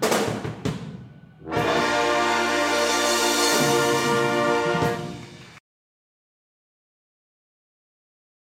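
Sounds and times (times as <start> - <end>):
brass: 1.4 - 5.6
saxophone: 1.5 - 5.6.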